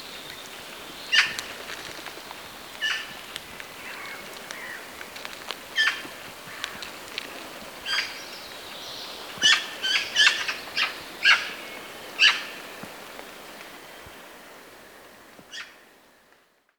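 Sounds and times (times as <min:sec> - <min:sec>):
Eurasian magpie calling: 0:01.1 - 0:01.4, 0:02.8 - 0:03.2, 0:05.8 - 0:06.8, 0:07.8 - 0:08.2, 0:09.4 - 0:11.6, 0:12.2 - 0:12.6.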